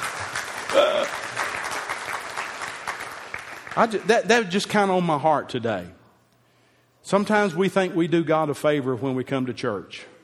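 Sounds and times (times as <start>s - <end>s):
hand clap: 0.0s - 4.1s
speech: 0.7s - 1.3s, 3.8s - 6.0s, 7.0s - 10.1s.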